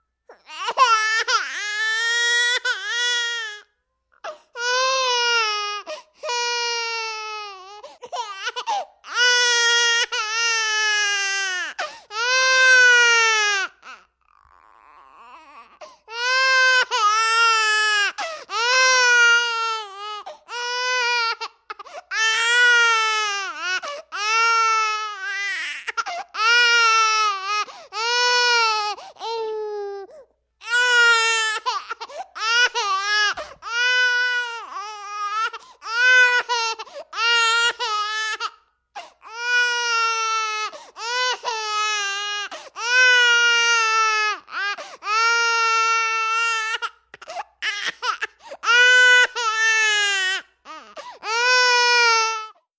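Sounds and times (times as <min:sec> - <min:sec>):
10-month-old baby crying indoors: 0:00.3 - 0:52.6.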